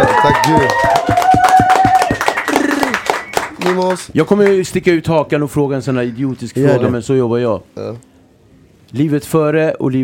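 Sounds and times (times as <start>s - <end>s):
hand clapping: 0.0s - 4.6s
speech: 0.2s - 0.9s, 3.6s - 8.1s, 8.9s - 10.0s.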